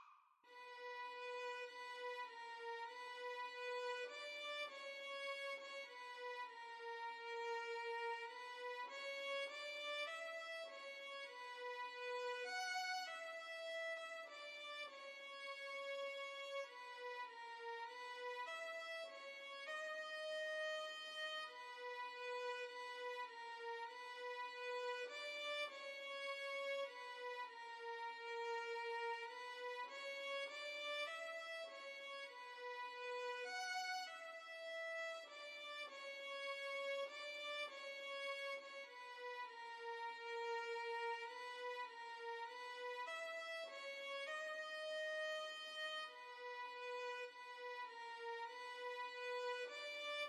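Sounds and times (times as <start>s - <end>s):
carol violin duet: 0.5s - 50.2s.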